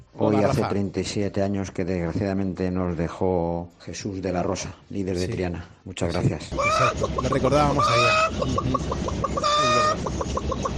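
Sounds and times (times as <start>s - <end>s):
speech: 0.2s - 10.6s
laying hen clucking: 6.5s - 10.7s.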